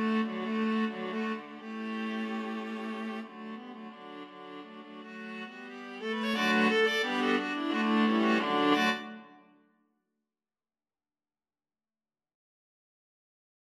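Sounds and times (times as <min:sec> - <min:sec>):
viola ensemble: 0:00.0 - 0:09.3.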